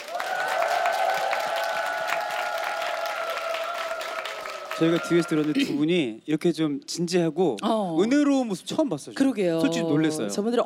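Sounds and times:
audience applause and cheering: 0.0s - 5.8s
speech: 4.8s - 10.6s.

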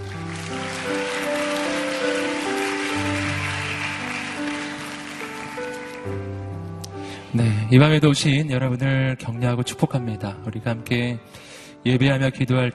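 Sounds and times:
applause: 0.0s - 6.3s
speech: 7.3s - 12.7s.

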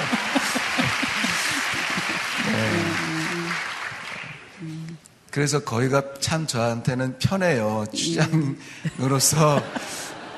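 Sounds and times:
laughter: 0.0s - 3.2s, 8.2s - 10.3s
audience applause: 0.0s - 4.6s
speech: 5.4s - 10.1s.

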